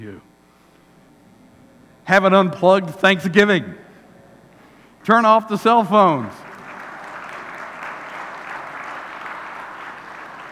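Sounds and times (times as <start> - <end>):
speech: 0.0 - 0.3, 2.1 - 3.8, 5.0 - 6.4
large crowd applauding: 5.7 - 10.4.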